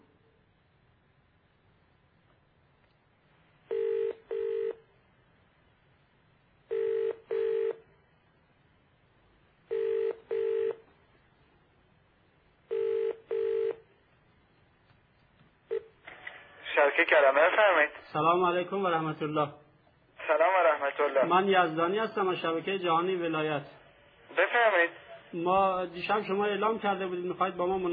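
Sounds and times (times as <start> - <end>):
telephone call ringing on the line: 3.7 - 4.9, 6.7 - 7.9, 9.7 - 10.9, 12.7 - 13.9, 15.7 - 16.0
speech: 17.0 - 19.6, 21.0 - 23.8, 24.4 - 27.9.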